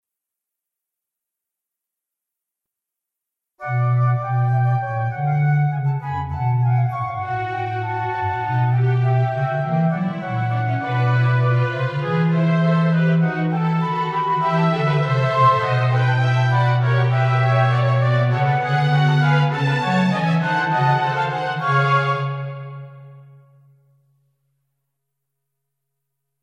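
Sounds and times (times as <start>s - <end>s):
instrumental music: 3.6s - 24.2s.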